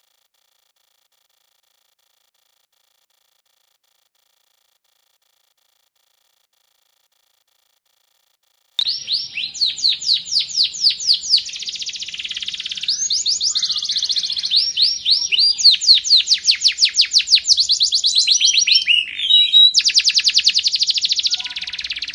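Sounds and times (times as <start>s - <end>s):
Sekar Jagad canary singing: 8.8s - 22.1s.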